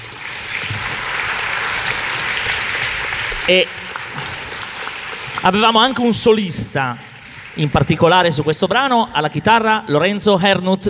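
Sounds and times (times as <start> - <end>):
audience applause: 0.0 - 8.6
speech: 3.5 - 3.8, 5.4 - 10.8.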